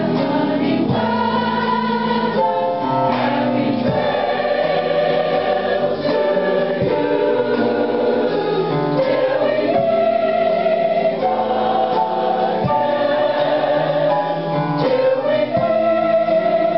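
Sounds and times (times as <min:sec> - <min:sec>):
choir singing: 0:00.0 - 0:16.7.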